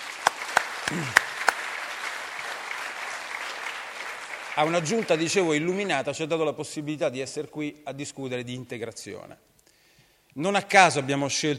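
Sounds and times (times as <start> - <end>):
audience applause for a town council and mayor during a public talk: 0.0 - 6.2
speech: 0.9 - 1.2, 4.6 - 9.5, 10.4 - 11.5.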